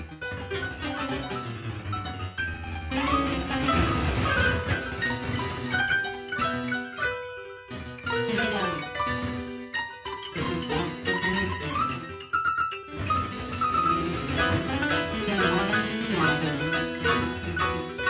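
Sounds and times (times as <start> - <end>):
violin: 0.0 - 18.0.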